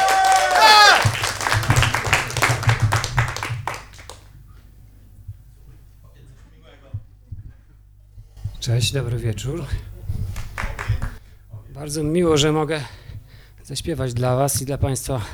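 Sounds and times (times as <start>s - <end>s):
audience applause greeting a former vocalist at a live concert: 0.0s - 4.3s, 10.3s - 11.2s
speech: 8.7s - 9.9s, 11.8s - 13.0s, 13.7s - 15.3s.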